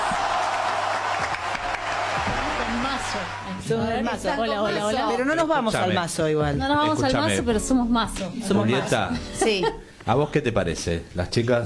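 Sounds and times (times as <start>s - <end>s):
loud audience applause: 0.0s - 3.6s
speech: 3.1s - 11.6s.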